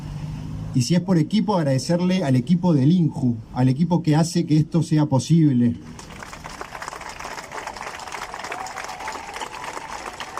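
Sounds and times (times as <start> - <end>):
speech: 0.7 - 6.1
applause: 6.0 - 10.3.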